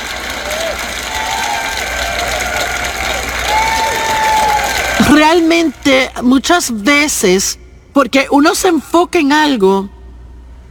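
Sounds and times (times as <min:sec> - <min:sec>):
group applauding: 0:00.0 - 0:06.0
speech: 0:05.2 - 0:10.0.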